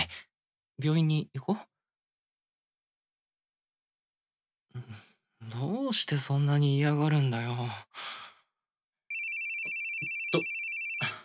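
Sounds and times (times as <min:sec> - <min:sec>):
speech: 0:00.8 - 0:01.7, 0:04.8 - 0:08.2
telephone ringtone: 0:09.1 - 0:11.2.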